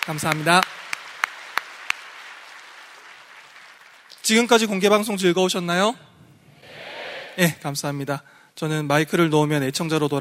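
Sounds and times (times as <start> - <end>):
speech: 0.0 - 0.9, 4.3 - 6.2, 7.4 - 10.2
hand claps: 0.0 - 4.2.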